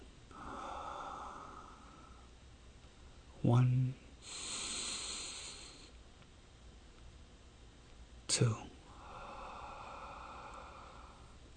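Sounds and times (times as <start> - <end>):
deep inhale through the nose during alternate-nostril breathing: 0.3 - 2.3, 4.2 - 6.0, 8.9 - 11.4
speech: 3.4 - 4.5, 8.3 - 8.8.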